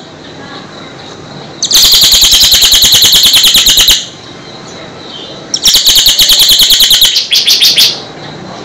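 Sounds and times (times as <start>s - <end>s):
bird singing rapid high chattering trills: 1.6s - 8.1s.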